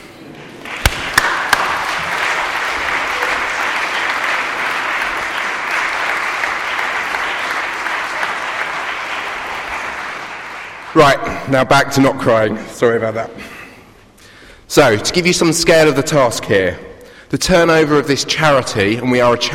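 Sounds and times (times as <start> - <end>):
audience applause: 0.4 - 11.2
speech: 11.0 - 13.5, 14.7 - 19.5.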